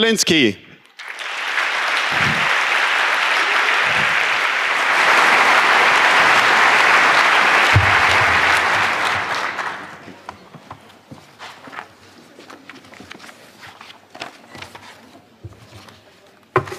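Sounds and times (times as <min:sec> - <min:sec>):
audience applause: 0:01.0 - 0:10.3.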